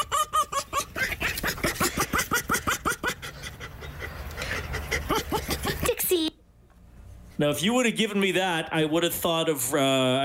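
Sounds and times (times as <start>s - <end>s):
fox laughing: 0.0s - 6.0s
speech: 7.4s - 10.2s.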